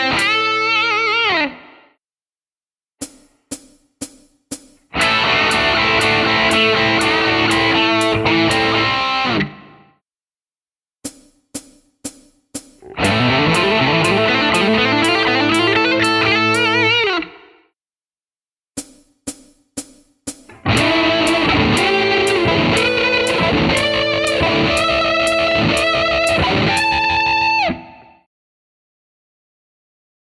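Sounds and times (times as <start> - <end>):
rock guitar licks: 0.0 - 1.4, 4.9 - 9.6, 12.8 - 17.4, 20.5 - 27.9.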